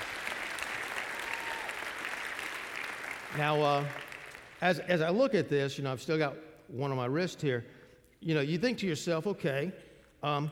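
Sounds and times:
audience applause: 0.0s - 4.6s
speech: 3.3s - 10.5s.

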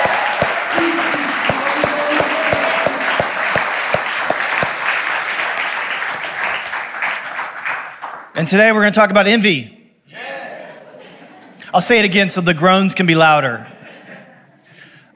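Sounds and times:
faint vocal cheers: 0.0s - 4.8s
crowd applause: 0.0s - 8.3s
speech: 8.4s - 9.8s, 11.7s - 13.8s.

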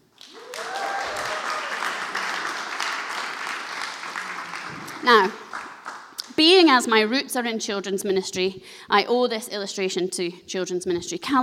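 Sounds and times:
audience cheering: 0.2s - 6.1s
speech: 5.0s - 5.4s, 6.4s - 11.4s.

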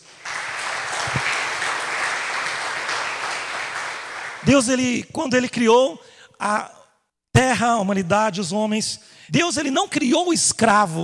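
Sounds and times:
audience applauding: 0.0s - 4.6s
speech: 4.4s - 6.8s, 7.6s - 11.0s.

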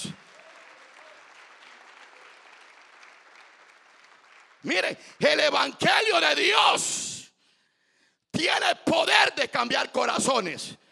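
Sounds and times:
audience applause: 0.0s - 5.2s
speech: 4.6s - 7.1s, 8.4s - 10.8s.

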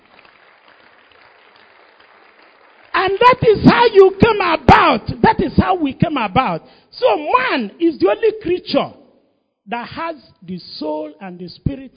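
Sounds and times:
audience applause: 0.0s - 3.3s
speech: 3.1s - 9.0s, 9.7s - 11.9s.

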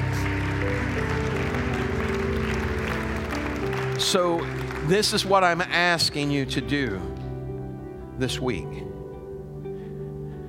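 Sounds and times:
audience hand clapping applause: 0.0s - 6.4s
speech: 4.0s - 7.1s, 8.2s - 8.9s.

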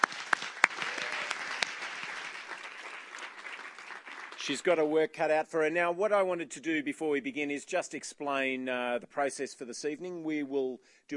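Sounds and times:
audience applause: 0.0s - 4.8s
speech: 4.4s - 11.1s.

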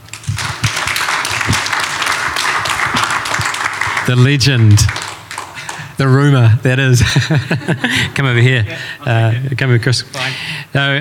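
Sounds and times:
audience applause: 0.0s - 6.0s
speech: 4.1s - 5.0s, 6.0s - 10.9s
laughter: 7.0s - 9.4s.

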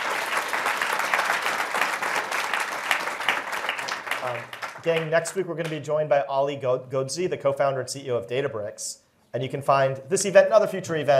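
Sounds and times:
audience applause: 0.0s - 5.2s
speech: 4.2s - 11.1s.

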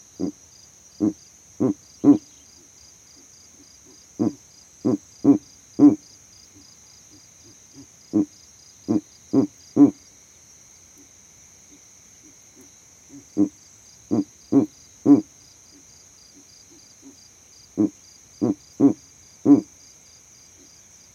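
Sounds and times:
steady high-pitched insect trill: 0.0s - 21.1s
Verreaux's eagle owl giving deep grunting hoots: 0.2s - 0.4s, 1.0s - 2.4s, 3.8s - 6.1s, 7.7s - 10.0s, 12.6s - 15.8s, 17.0s - 19.8s.

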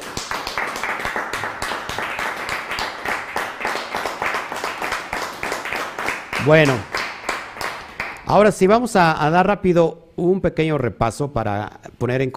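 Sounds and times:
crowd clapping: 0.0s - 8.4s
speech: 6.4s - 6.9s, 8.3s - 12.3s.

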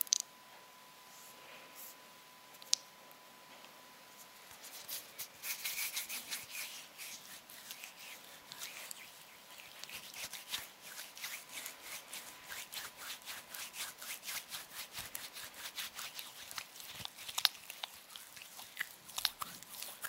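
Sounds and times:
faint steady whine: 0.0s - 20.0s
hands rubbing and brushing against each other: 4.6s - 20.0s.

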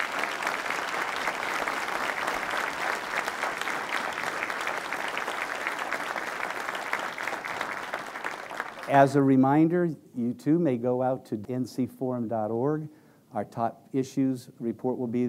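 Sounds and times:
audience applause for panelists: 0.0s - 9.1s
speech: 8.9s - 15.2s.

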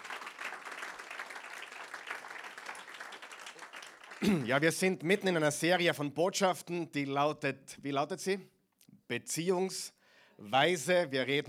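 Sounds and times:
audience applause: 0.0s - 4.6s
speech: 4.2s - 11.4s.

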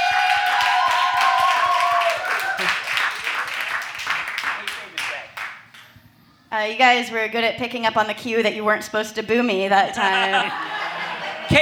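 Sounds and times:
audience applause: 0.0s - 5.9s
laughter: 2.0s - 5.4s, 9.7s - 11.6s
speech: 6.6s - 10.7s.

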